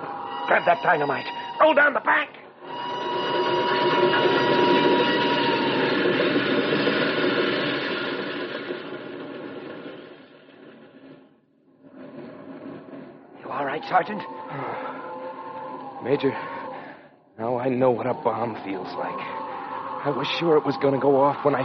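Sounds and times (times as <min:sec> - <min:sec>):
approaching train on rails: 0:00.0 - 0:21.6
speech: 0:00.5 - 0:02.4, 0:13.8 - 0:14.8, 0:16.0 - 0:16.5, 0:17.4 - 0:19.4, 0:20.0 - 0:21.6.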